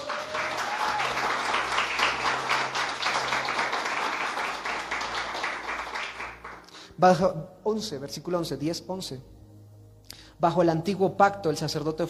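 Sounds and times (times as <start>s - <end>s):
audience applause: 0.0s - 6.7s
speech: 7.0s - 9.3s, 10.4s - 12.0s.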